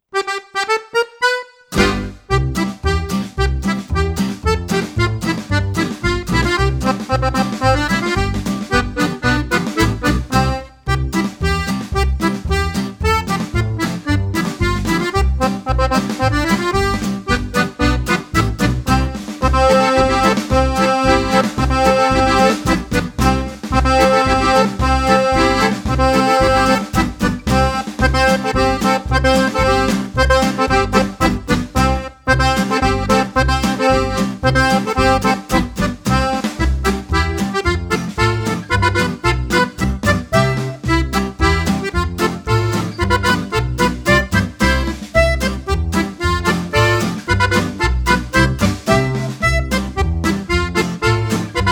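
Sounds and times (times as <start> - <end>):
heel and toe polka music: 0.0 - 51.7.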